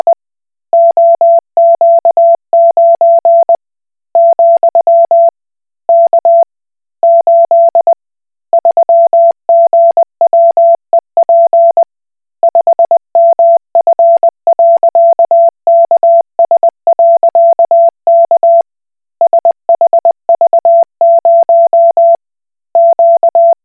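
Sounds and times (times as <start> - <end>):
Koch Morse code beeps: 0.8 - 3.6, 4.2 - 5.3, 7.0 - 7.9, 8.6 - 11.9, 12.5 - 18.6, 19.2 - 22.2, 22.8 - 23.6.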